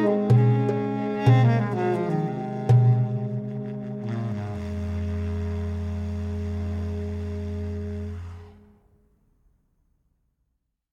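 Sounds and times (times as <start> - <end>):
jazz blues music: 0.0 - 8.2.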